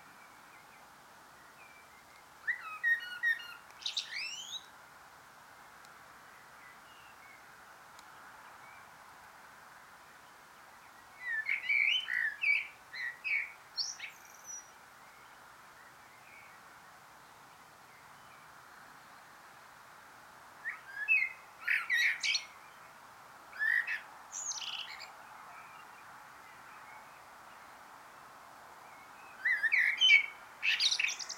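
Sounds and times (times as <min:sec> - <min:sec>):
soft hiss: 0:00.0 - 0:31.3
common blackbird singing: 0:00.1 - 0:04.7, 0:10.2 - 0:16.6, 0:20.6 - 0:22.9, 0:23.6 - 0:27.8, 0:28.8 - 0:31.3.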